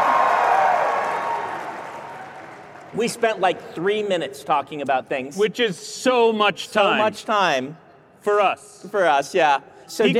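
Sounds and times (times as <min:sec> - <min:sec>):
audience applause: 0:00.0 - 0:03.4
speech: 0:02.9 - 0:10.1.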